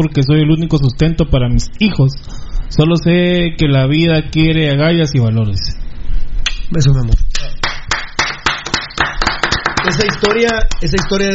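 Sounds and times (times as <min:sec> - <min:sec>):
speech: 0:00.0 - 0:05.8, 0:06.7 - 0:07.6, 0:09.8 - 0:11.3
hand clapping: 0:07.3 - 0:11.3.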